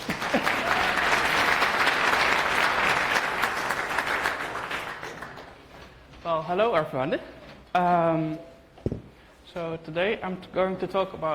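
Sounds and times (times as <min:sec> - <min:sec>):
crowd clapping: 0:00.0 - 0:05.7
speech: 0:06.5 - 0:11.3.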